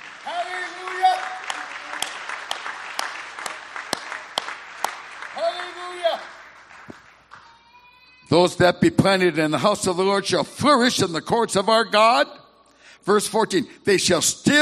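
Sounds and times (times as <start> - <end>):
audience clapping hands: 0.0 - 7.7
speech: 8.3 - 12.4, 13.0 - 14.6.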